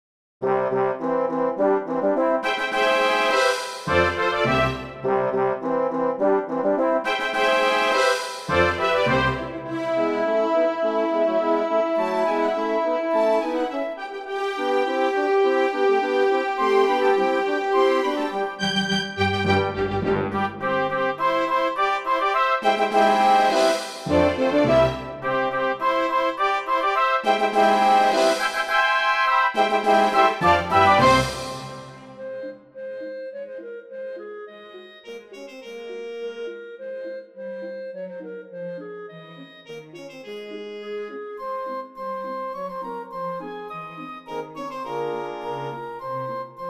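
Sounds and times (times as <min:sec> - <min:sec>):
trumpet piece: 0:00.4 - 0:32.8, 0:35.0 - 0:36.8, 0:44.0 - 0:46.6.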